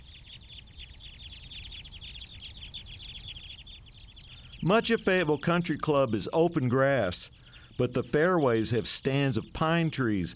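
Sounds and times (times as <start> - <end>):
crossbill flock flight calls overhead: 0.0 - 10.3
speech: 4.6 - 10.3.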